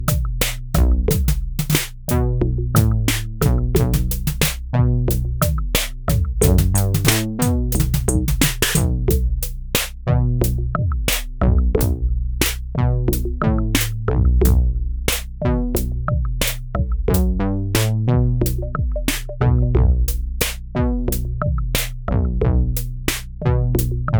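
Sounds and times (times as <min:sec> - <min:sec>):
dry rhythm section: 0:00.0 - 0:19.4, 0:20.0 - 0:22.0, 0:22.8 - 0:24.0.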